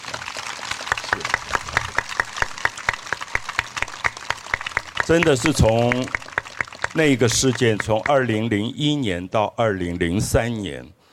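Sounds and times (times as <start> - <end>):
audience applause: 0.0 - 8.5
speech: 5.1 - 6.2, 6.9 - 11.0.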